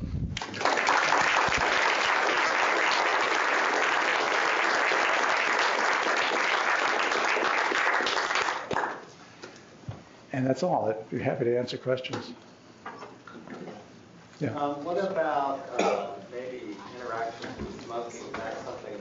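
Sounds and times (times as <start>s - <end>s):
crowd applause: 0.4s - 9.1s
speech: 10.4s - 12.5s, 14.4s - 19.0s.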